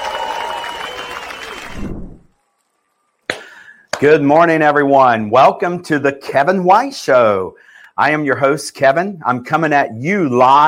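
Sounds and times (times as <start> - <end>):
audience applauding to welcome the host of a live show: 0.0 - 4.1
speech: 4.0 - 10.6.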